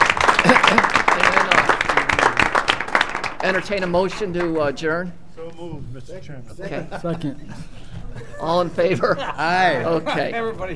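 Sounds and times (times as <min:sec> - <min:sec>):
laughter: 0:00.0 - 0:02.4, 0:06.4 - 0:10.7
audience applause: 0:00.0 - 0:04.6
speech: 0:00.4 - 0:01.3, 0:03.4 - 0:10.7.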